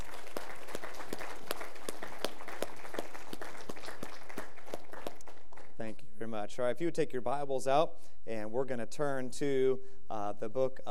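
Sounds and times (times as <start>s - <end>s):
round of applause: 0.0s - 5.7s
speech: 6.4s - 10.9s.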